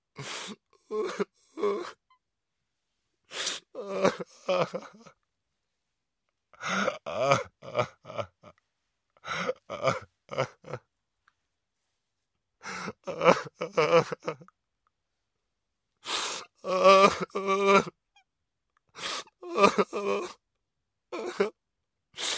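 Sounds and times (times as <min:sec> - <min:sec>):
man crying: 0:00.2 - 0:02.0, 0:03.8 - 0:05.2, 0:06.6 - 0:08.6, 0:09.2 - 0:10.9, 0:12.6 - 0:14.5, 0:16.6 - 0:18.0, 0:19.2 - 0:20.4, 0:21.2 - 0:21.6.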